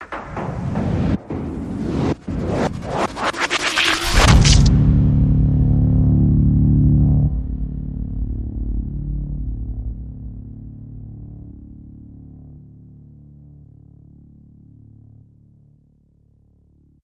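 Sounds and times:
big hit: 0:00.0 - 0:11.8.

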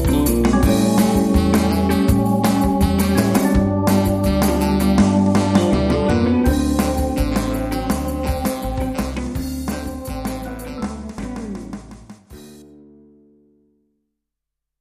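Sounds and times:
saxophone: 0:00.0 - 0:11.6.

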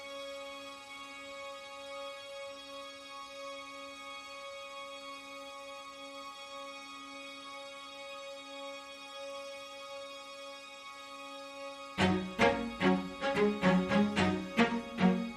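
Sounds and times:
strings: 0:06.3 - 0:15.3.

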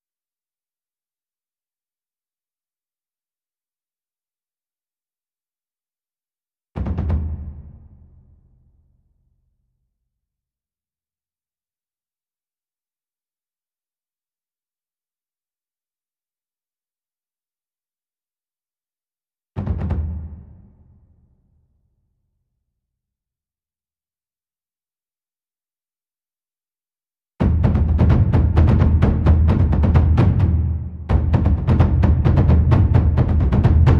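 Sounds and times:
taiko drums: 0:06.8 - 0:08.3, 0:19.6 - 0:20.9, 0:27.4 - 0:33.9.

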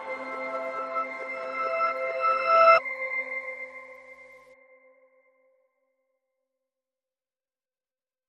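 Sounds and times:
synth pads: 0:00.0 - 0:04.4.

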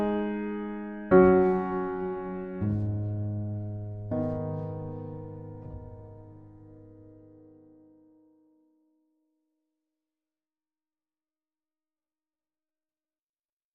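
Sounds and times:
low piano: 0:00.0 - 0:08.7.

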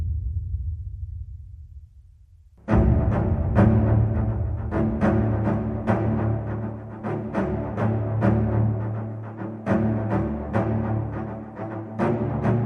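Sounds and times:
strings: 0:02.6 - 0:12.6.

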